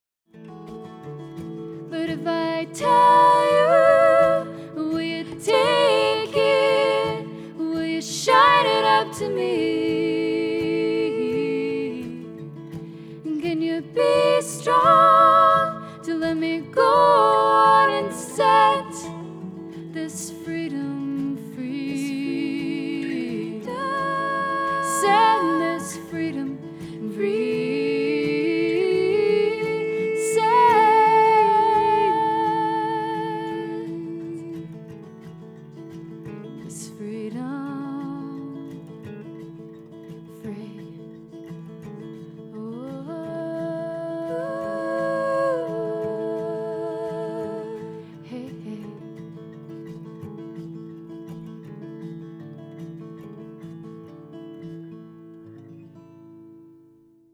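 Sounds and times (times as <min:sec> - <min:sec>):
person singing: 0:01.9 - 0:12.4, 0:13.3 - 0:34.8, 0:42.5 - 0:48.9.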